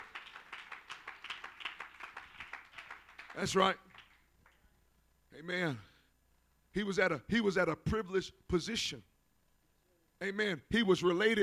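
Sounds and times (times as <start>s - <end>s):
congregation clapping hands in praise: 0.0s - 4.7s
speech: 3.4s - 3.9s, 5.4s - 5.9s, 6.8s - 9.1s, 10.2s - 11.4s.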